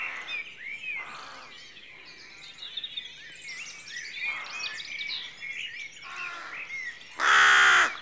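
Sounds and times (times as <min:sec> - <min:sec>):
rook cawing at a rookery at dawn in a rural setting: 0:07.2 - 0:08.0.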